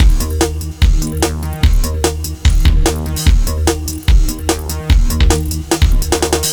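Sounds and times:
resonant synth loop: 0.0 - 6.5.

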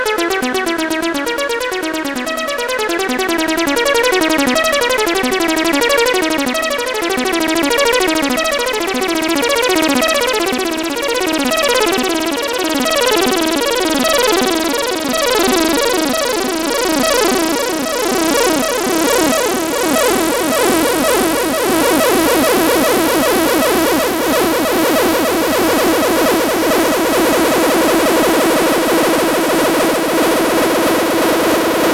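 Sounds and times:
synth sequence: 0.1 - 31.9.

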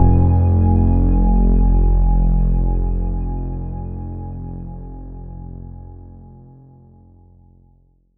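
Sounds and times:
Oberheim OB-Xa synth bass F1: 0.0 - 5.8.

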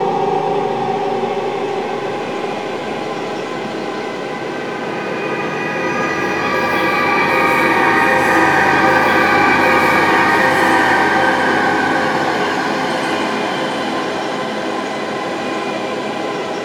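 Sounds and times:
horror atmosphere production effect: 0.0 - 16.5.

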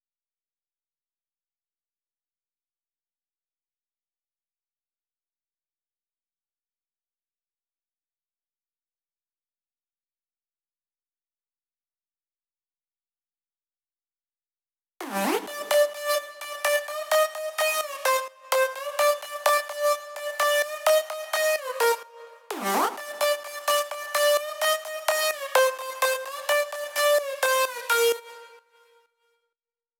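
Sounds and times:
wet synth lead in G: 15.0 - 29.0.

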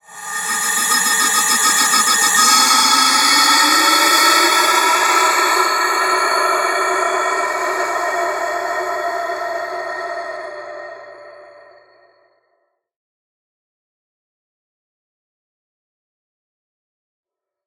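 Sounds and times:
Andean wind flute: 0.0 - 12.1.

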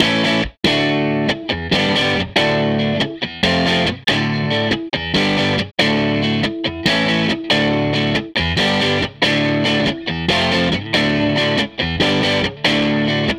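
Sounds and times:
Strat guitar loop: 0.0 - 13.3.

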